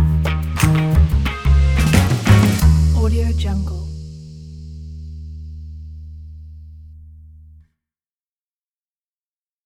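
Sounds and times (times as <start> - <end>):
funk music: 0.0 - 5.6.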